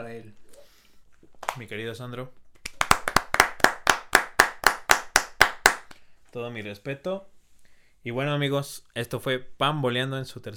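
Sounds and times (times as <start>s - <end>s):
speech: 0.0s - 0.5s, 1.6s - 2.4s, 6.3s - 7.4s, 8.0s - 10.5s
hand claps: 2.6s - 6.0s.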